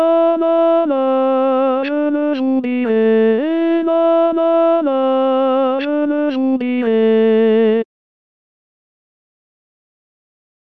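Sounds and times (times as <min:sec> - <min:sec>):
tenor singing: 0:00.0 - 0:07.8.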